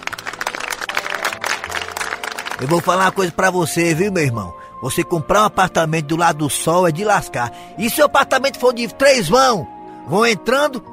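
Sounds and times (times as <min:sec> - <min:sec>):
applause: 0:00.0 - 0:03.4
speech: 0:02.6 - 0:10.9.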